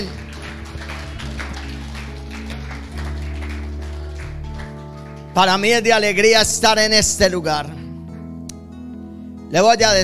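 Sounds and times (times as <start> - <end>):
audience applauding: 0.0 - 6.1
speech: 5.4 - 7.8, 9.5 - 10.0.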